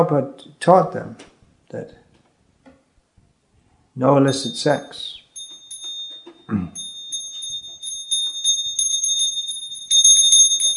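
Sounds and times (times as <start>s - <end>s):
speech: 0.0s - 2.0s, 4.0s - 5.2s, 6.5s - 6.8s
bell ringing: 4.3s - 10.7s.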